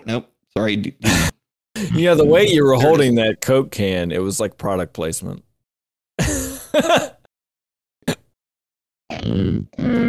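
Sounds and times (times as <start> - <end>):
speech: 0.1 - 5.5, 6.2 - 7.2, 9.2 - 10.0
voice imitating a demon's growl: 9.1 - 10.0.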